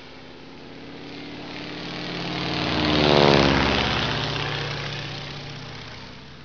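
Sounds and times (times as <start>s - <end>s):
biplane: 0.0s - 6.4s.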